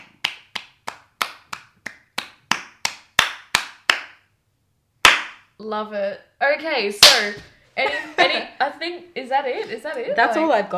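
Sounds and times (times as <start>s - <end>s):
hand clapping: 0.0s - 4.3s, 5.0s - 5.5s
speech: 5.6s - 10.7s.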